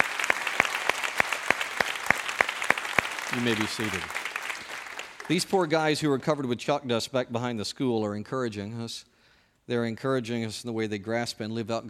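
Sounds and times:
audience applauding: 0.0s - 6.0s
speech: 3.3s - 4.2s, 5.3s - 9.1s, 9.7s - 11.8s.

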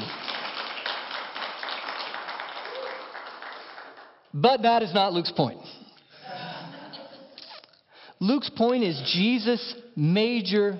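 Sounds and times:
audience clapping: 0.0s - 4.4s
speech: 4.4s - 5.8s, 8.2s - 10.7s
laughter: 6.1s - 7.4s.

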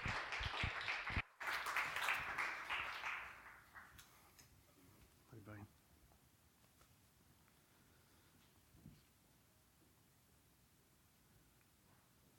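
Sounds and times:
church congregation applauding to welcome a preacher: 0.0s - 4.5s.

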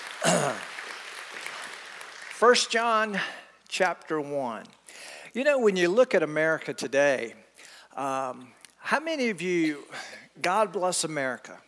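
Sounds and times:
audience applause: 0.0s - 2.6s
speech: 2.4s - 7.4s, 8.0s - 11.6s.

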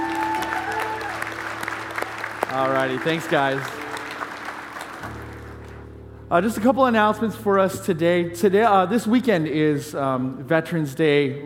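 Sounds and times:
applause: 0.0s - 5.8s
speech: 2.6s - 3.8s, 6.3s - 11.4s.

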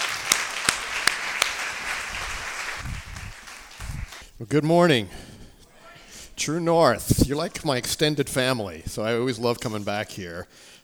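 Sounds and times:
audience applause: 0.0s - 4.2s
speech: 4.4s - 5.2s, 6.4s - 10.8s.

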